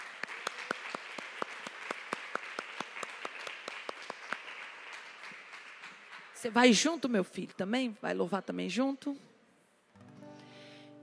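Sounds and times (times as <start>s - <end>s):
audience applause: 0.0s - 6.4s
speech: 6.4s - 9.3s.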